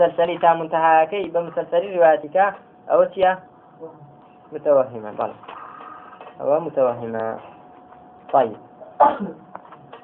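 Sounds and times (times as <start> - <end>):
speech: 0.0 - 5.5, 6.4 - 7.5, 8.3 - 9.4
person sneezing: 8.9 - 9.4.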